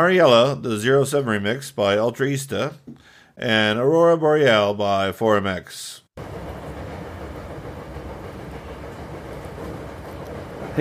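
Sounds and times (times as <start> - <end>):
speech: 0.0 - 6.4
train riding the rails in Osaka: 6.2 - 10.8.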